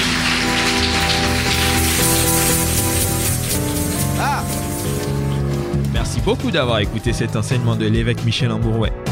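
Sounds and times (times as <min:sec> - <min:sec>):
audience clapping and cheering: 0:00.0 - 0:05.4
speech: 0:06.3 - 0:09.0.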